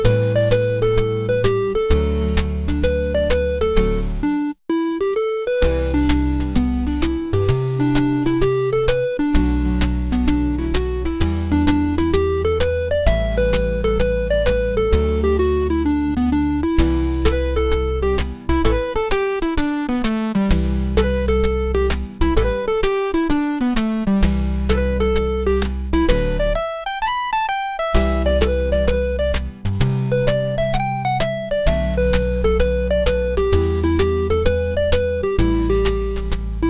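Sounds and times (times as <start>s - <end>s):
chiptune music: 0.0s - 36.6s.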